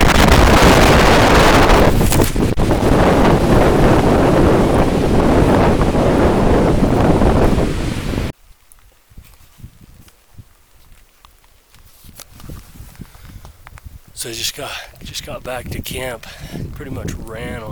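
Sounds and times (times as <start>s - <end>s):
strong wind during a mountain storm: 0.0s - 8.3s, 12.3s - 17.7s
thunder: 0.0s - 8.3s
speech: 14.6s - 17.7s.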